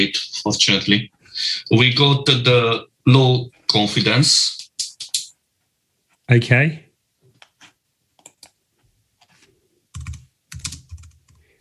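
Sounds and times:
speech: 0.0s - 4.6s, 6.3s - 6.8s
typing on a computer keyboard: 8.2s - 8.6s, 9.9s - 11.5s.

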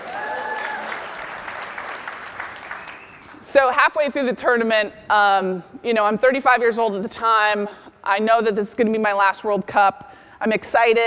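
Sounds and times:
audience applause: 0.0s - 3.4s
speech: 3.5s - 11.0s.

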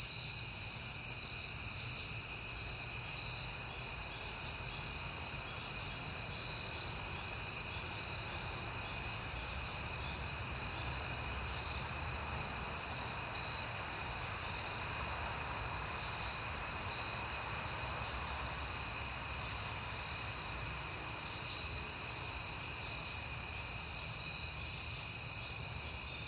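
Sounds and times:
crickets chirping in a chorus: 0.0s - 26.2s.

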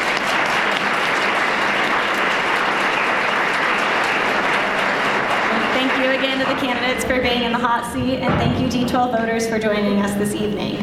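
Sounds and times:
audience applause: 0.0s - 7.4s
speech: 6.2s - 10.8s.

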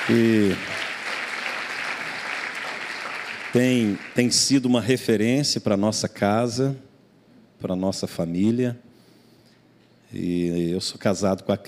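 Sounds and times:
audience applause: 0.0s - 4.5s
speech: 0.1s - 0.8s, 3.6s - 6.9s, 7.6s - 8.9s, 10.1s - 11.6s.

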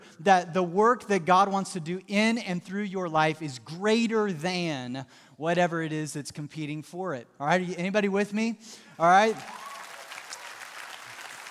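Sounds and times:
speech: 0.2s - 9.6s
audience applause: 9.1s - 11.5s.

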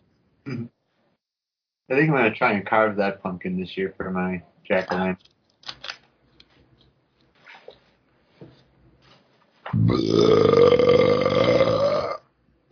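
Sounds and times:
speech: 1.9s - 5.8s, 9.9s - 11.0s
long loud burp: 9.8s - 12.3s.

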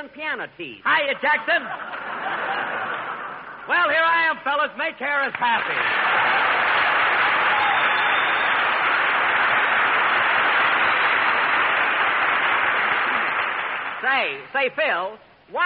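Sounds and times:
speech: 0.1s - 2.9s, 3.7s - 6.8s, 14.0s - 15.6s
laughter: 1.3s - 3.7s
audience applause: 5.6s - 14.2s.

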